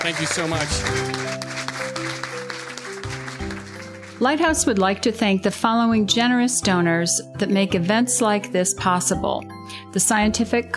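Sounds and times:
speech: 0.0 - 1.4, 4.2 - 10.7
audience applause: 0.0 - 4.4.

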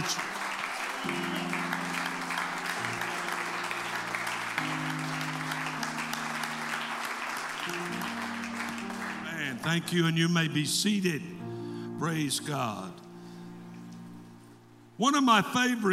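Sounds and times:
congregation clapping during an evening church service: 0.0 - 10.6
speech: 9.6 - 11.4, 12.0 - 13.0, 15.0 - 15.9.

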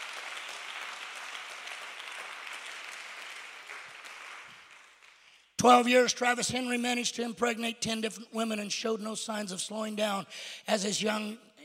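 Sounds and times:
audience clapping hands: 0.0 - 5.6
speech: 5.6 - 11.5.

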